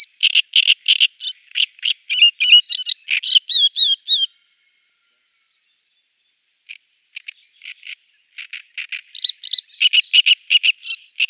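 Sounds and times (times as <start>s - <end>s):
Great reed warbler singing: 0.0s - 11.2s.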